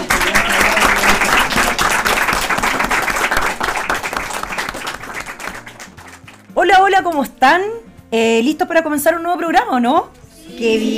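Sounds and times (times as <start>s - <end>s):
audience applause: 0.0s - 6.5s
speech: 6.9s - 10.9s.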